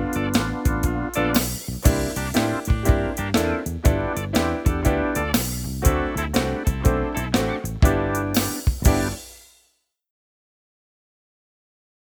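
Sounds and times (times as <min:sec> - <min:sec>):
instrumental music: 0:00.0 - 0:09.6.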